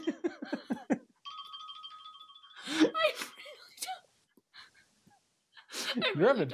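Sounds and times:
laughter: 0:00.0 - 0:01.0, 0:05.7 - 0:06.5
phone alarm ringing: 0:01.3 - 0:03.6.

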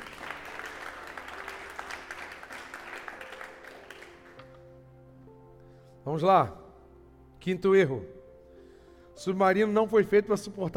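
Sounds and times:
audience applauding: 0:00.0 - 0:04.6
speech: 0:06.1 - 0:06.6, 0:07.4 - 0:08.2, 0:09.2 - 0:10.7.

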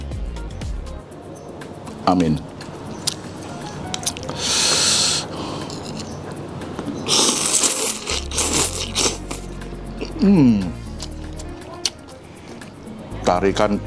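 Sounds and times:
speech: 0:02.1 - 0:02.5, 0:10.2 - 0:10.8, 0:13.3 - 0:13.8
slurping noodle soup: 0:04.2 - 0:06.1, 0:07.0 - 0:09.5.

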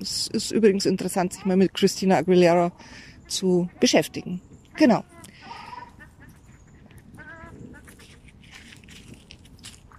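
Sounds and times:
speech: 0:00.0 - 0:05.1
ruddy shelducks calling: 0:01.0 - 0:08.4.

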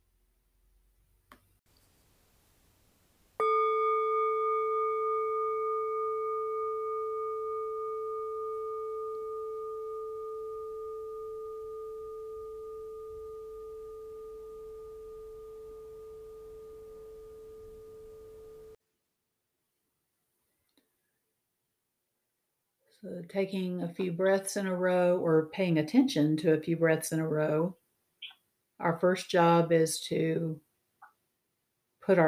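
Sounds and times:
meditation bell ringing: 0:03.4 - 0:18.8
speech: 0:23.0 - 0:27.8, 0:28.8 - 0:30.6, 0:32.0 - 0:32.2.

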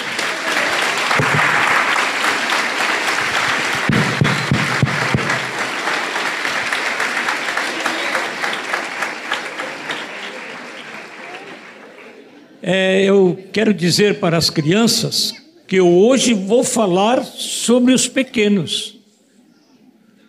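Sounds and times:
audience applauding: 0:00.0 - 0:12.6
speech: 0:12.7 - 0:19.0.

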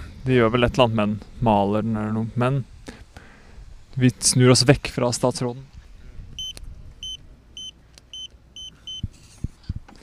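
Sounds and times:
speech: 0:00.2 - 0:02.7, 0:04.0 - 0:05.7
door keypad code beeps: 0:06.4 - 0:09.1.

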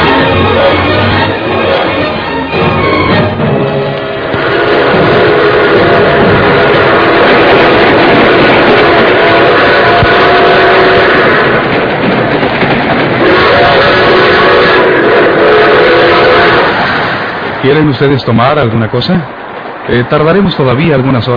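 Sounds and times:
steam whistle: 0:00.0 - 0:07.8, 0:08.6 - 0:11.6, 0:13.2 - 0:16.8
passenger train rumbling: 0:00.0 - 0:21.3
speech: 0:17.8 - 0:21.3.

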